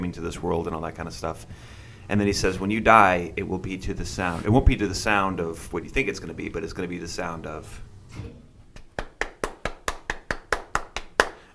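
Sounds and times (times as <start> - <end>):
speech: 0.1 - 8.4
crowd clapping: 8.8 - 11.5.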